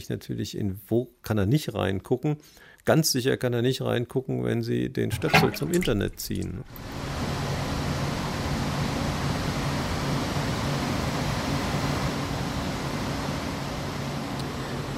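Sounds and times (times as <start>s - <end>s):
speech: 0.0s - 7.1s
air conditioning ventilation hum: 5.0s - 14.9s.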